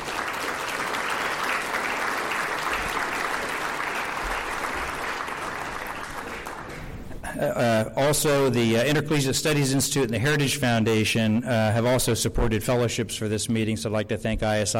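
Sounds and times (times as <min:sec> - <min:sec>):
audience applause for program sponsors at a meeting: 0:00.0 - 0:07.2
speech: 0:07.4 - 0:14.7.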